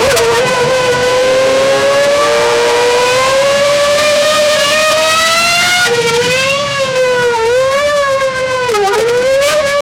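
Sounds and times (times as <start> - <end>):
latest Formula 1 car engine: 0.0 - 9.8.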